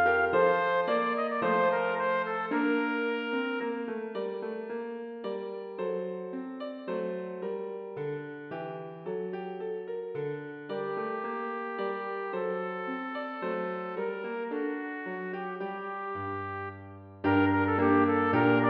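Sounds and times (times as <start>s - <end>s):
trumpet playing a minuet: 0.0s - 4.1s, 10.8s - 18.6s
piano: 0.0s - 18.6s.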